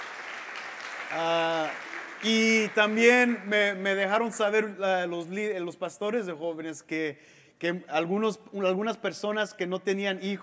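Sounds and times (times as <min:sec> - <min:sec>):
crowd applause: 0:00.0 - 0:04.3
speech: 0:01.1 - 0:10.4.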